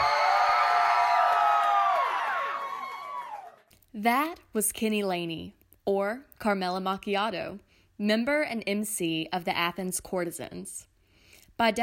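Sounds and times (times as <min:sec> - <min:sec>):
audience cheering and whooping: 0:00.0 - 0:03.6
speech: 0:04.0 - 0:10.9, 0:11.6 - 0:11.8.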